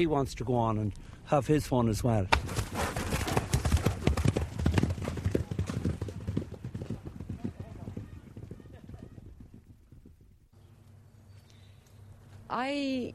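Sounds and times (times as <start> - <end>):
speech: 0.0 - 3.0
horse hooves clip-clopping: 2.3 - 10.4.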